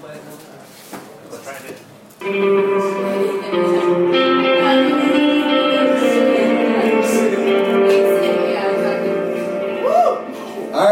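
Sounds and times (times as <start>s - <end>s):
guitar playing with the band at a live stand-up comedy show: 2.2s - 10.8s.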